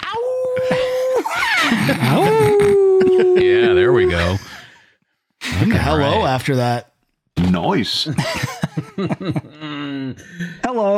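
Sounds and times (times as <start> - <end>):
person imitating a wolf howl: 0.0 - 4.4
laughter: 0.4 - 4.6, 8.1 - 9.6
speech: 1.9 - 2.4, 5.9 - 10.9.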